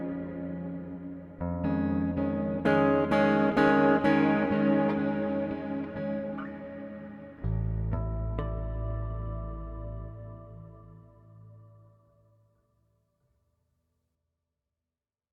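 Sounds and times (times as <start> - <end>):
improvised music: 0.0 - 11.6.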